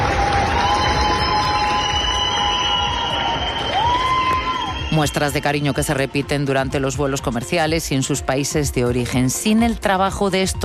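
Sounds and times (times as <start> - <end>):
crowd giving an ovation at an airport: 0.0 - 6.9
speech: 5.0 - 10.6.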